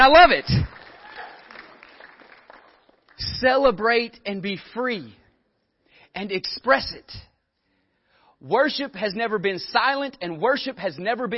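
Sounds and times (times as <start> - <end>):
speech: 0.0 - 0.8, 3.2 - 5.2, 6.1 - 7.3, 8.4 - 11.3
audience clapping: 0.1 - 3.4.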